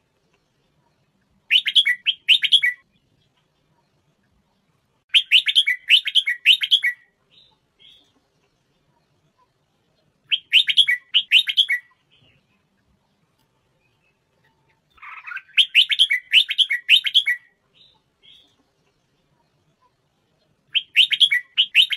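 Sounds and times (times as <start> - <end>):
Red-whiskered bulbul singing: 1.5 - 3.2, 5.1 - 8.1, 10.2 - 12.5, 14.9 - 18.5, 20.7 - 21.9.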